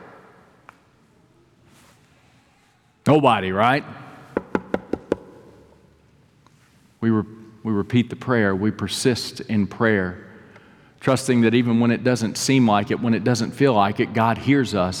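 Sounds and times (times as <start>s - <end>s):
speech: 3.1s - 4.0s, 7.2s - 10.3s, 11.0s - 14.9s
knocking on a door: 4.4s - 5.3s.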